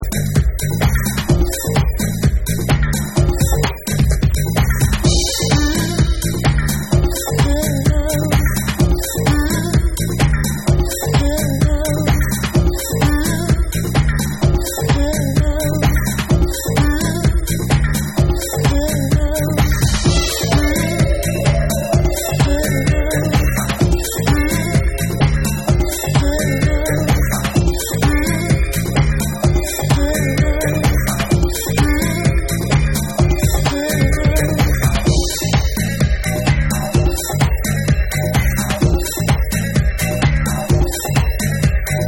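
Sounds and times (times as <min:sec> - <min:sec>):
groove instrumental: 0:00.0 - 0:42.0.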